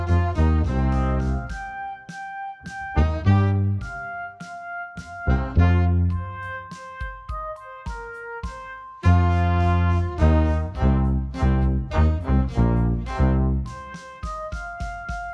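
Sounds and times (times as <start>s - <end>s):
tuba playing slow hard rock blues: 0.0s - 1.5s, 3.0s - 4.3s, 5.2s - 15.1s.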